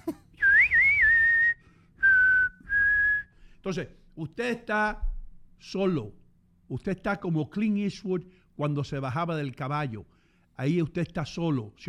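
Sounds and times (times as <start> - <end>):
person whistling: 0.4 - 3.4
speech: 3.6 - 11.8.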